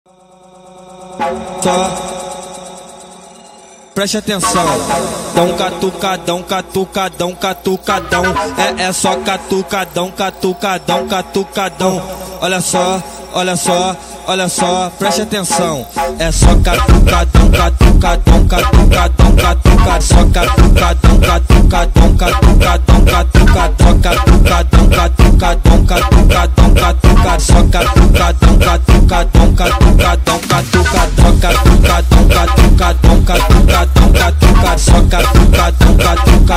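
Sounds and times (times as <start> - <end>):
Brazilian phonk remix: 0.6 - 36.5.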